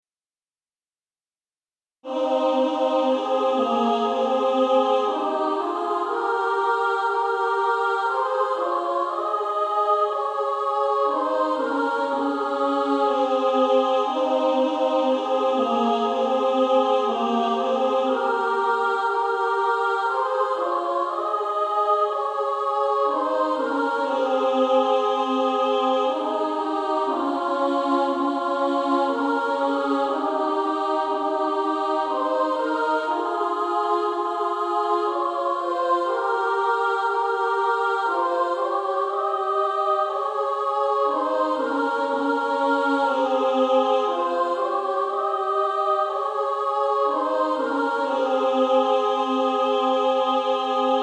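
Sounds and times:
female choir singing soprano and alto: 2.0s - 51.0s.

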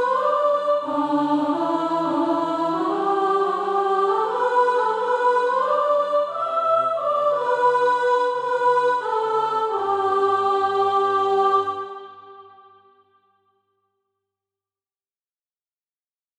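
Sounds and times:
soprano singing SATB practice music: 0.0s - 12.6s.

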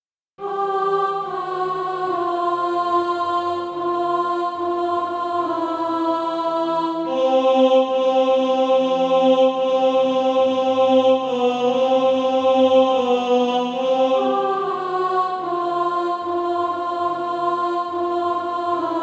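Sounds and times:
alto voice singing practice music: 0.4s - 19.0s.

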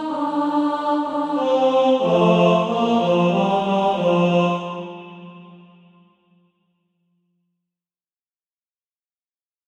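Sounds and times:
tenor SATB practice part: 0.0s - 5.7s.

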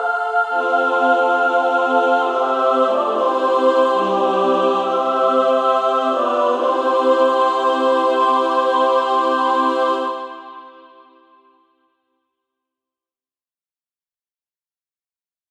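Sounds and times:
SSAA female choir singing: 0.0s - 11.4s.

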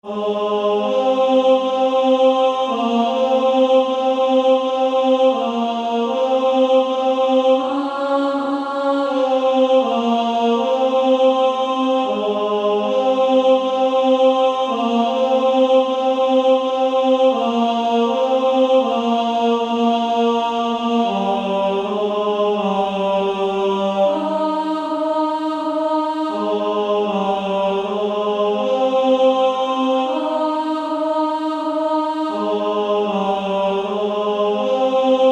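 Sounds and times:
female choir singing: 0.0s - 35.3s.

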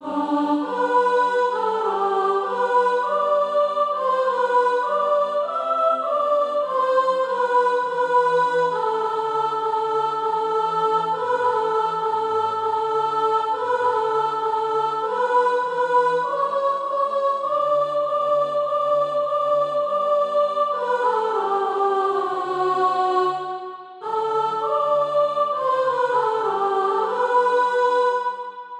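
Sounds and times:
soprano singing practice music: 0.0s - 28.7s.

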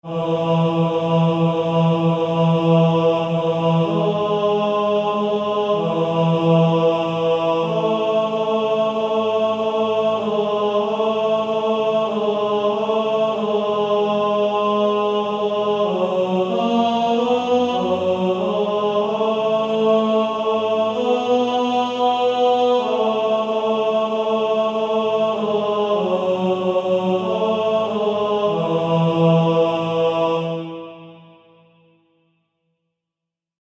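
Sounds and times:
male choir singing, second tenor part: 0.0s - 31.8s.

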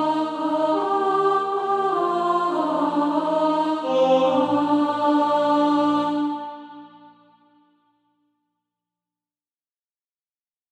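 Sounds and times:
alto voice singing practice music: 0.0s - 7.5s.

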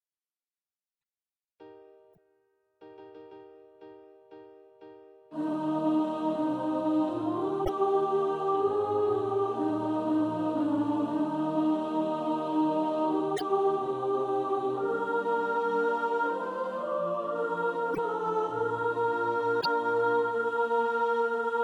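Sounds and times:
soprano singing practice music: 5.3s - 21.6s.

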